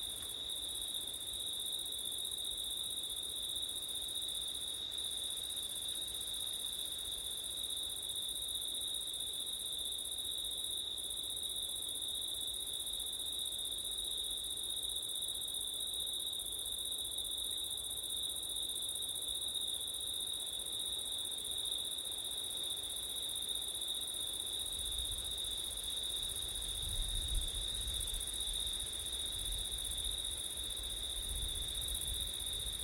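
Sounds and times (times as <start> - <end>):
faint background hiss: 0.0 - 32.8
cricket chorus trilling: 22.9 - 32.8.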